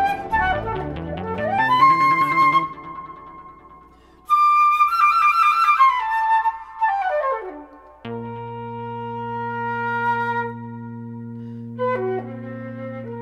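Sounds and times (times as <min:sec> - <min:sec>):
electronic sounds: 0:00.0 - 0:04.0
flute: 0:00.0 - 0:13.2.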